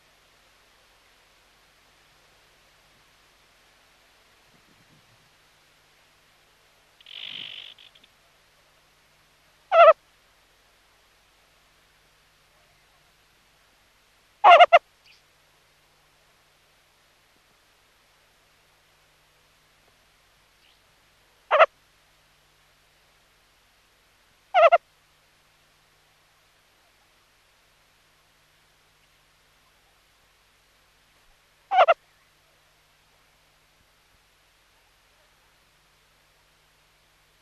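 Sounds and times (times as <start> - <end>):
meerkat sentry calls: 9.7 - 10.0, 14.4 - 14.8, 21.5 - 21.7, 24.5 - 24.8, 31.7 - 32.0.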